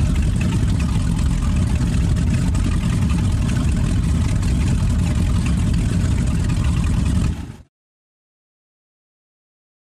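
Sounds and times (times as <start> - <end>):
offshore power boat engine starting and idling heard from interior: 0.0 - 7.7.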